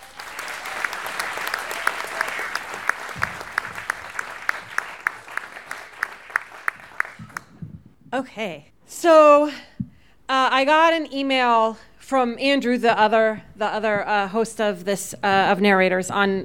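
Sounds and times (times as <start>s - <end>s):
audience applause at a live storytelling show in the Bumpport Theater: 0.0s - 7.7s
speech: 8.1s - 9.7s, 10.3s - 16.4s.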